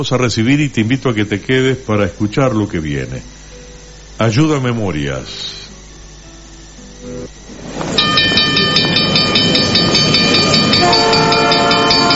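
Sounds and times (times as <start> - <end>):
speech: 0.0 - 3.4, 4.2 - 5.6
Tren Zonal train rumbling on rails: 7.5 - 12.1
sustained multi-tone train horn: 9.6 - 12.1.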